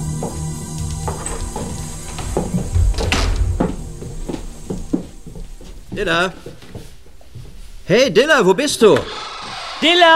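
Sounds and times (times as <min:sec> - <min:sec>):
knocks and shuffling as three people come into the house: 0:00.0 - 0:08.1
speech: 0:00.2 - 0:00.5, 0:06.0 - 0:06.6, 0:07.9 - 0:09.2, 0:09.8 - 0:10.1
house door opening with clicks, creaks and soft thumps: 0:00.8 - 0:04.4
rumbling bump: 0:00.8 - 0:06.0.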